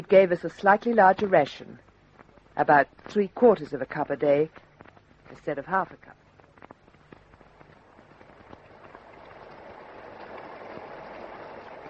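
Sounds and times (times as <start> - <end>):
speech: 0.0 - 1.9, 2.6 - 4.6, 5.3 - 6.2
heavy rain: 7.3 - 11.8.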